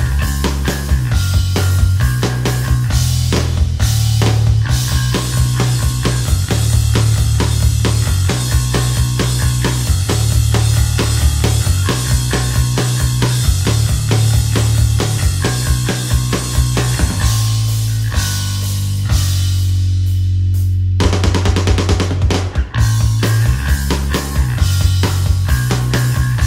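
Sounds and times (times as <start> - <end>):
guitar backing track in original tuning D: 0.0 - 26.4.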